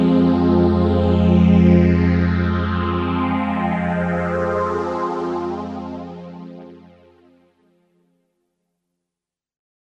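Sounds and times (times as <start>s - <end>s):
Virus KB synthesizer pad: 0.0s - 7.6s.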